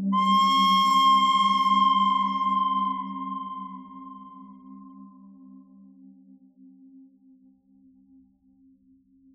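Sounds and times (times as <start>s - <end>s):
pentatonic bird melody: 0.2s - 4.8s.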